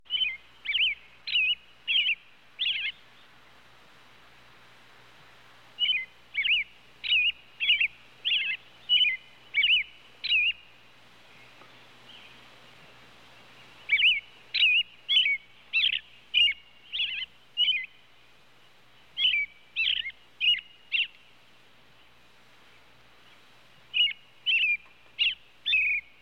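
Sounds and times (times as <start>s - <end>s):
robin chirping: 0.1s - 3.0s, 5.8s - 10.7s, 13.8s - 18.1s, 19.2s - 21.2s, 23.9s - 26.2s.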